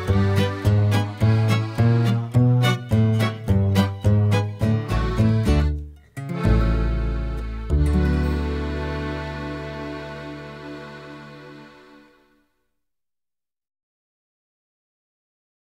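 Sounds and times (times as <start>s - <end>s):
backing track: 0.0s - 12.3s.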